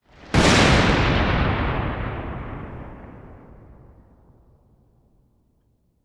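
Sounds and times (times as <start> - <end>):
storm lightning bolt crash crack: 0.3 - 4.0.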